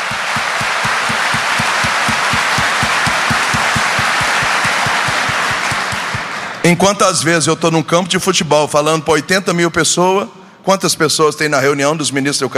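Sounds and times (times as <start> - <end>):
regular quick beat of low thumps: 0.0 - 6.3
large audience applause: 0.0 - 6.6
speech: 6.6 - 12.5.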